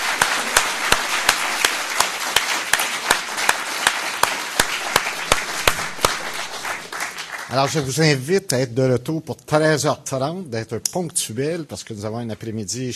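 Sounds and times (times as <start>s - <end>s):
sharp claps in a quick even rhythm: 0.0s - 7.9s
audience applause after a conference talk: 0.0s - 8.1s
speech: 7.5s - 12.9s.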